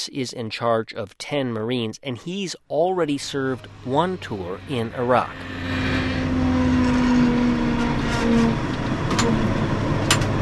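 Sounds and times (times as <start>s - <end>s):
speech: 0.0s - 5.7s
military amphibious tractor engine: 2.8s - 10.3s.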